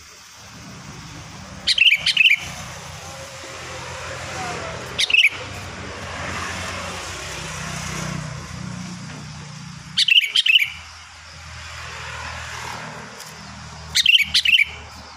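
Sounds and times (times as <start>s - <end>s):
Sooty-headed bulbul giving liquid chattering whistled phrases: 1.1s - 5.6s, 9.9s - 11.0s, 13.8s - 15.1s.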